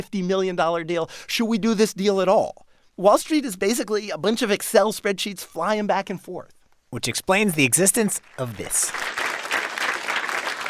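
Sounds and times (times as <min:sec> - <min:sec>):
speech: 0:00.0 - 0:09.2
audience clapping at Model Off 2014, an Excel financial modelling championship: 0:08.1 - 0:10.6.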